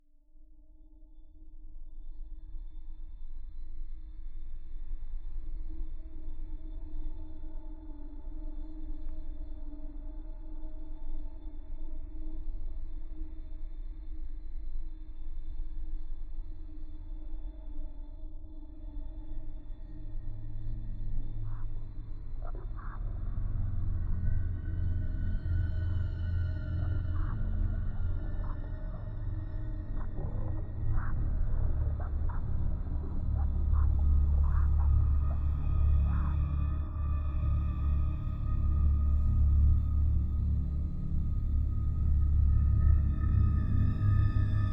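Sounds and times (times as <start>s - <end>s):
horror music: 22.4s - 44.7s.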